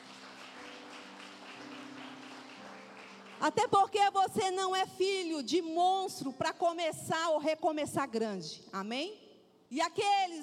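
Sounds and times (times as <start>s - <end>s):
audience applause: 0.0s - 3.5s
speech: 3.4s - 10.4s.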